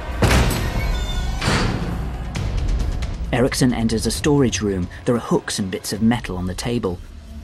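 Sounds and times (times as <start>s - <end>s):
door being kicked open: 0.2s - 2.0s
speech: 3.3s - 7.1s.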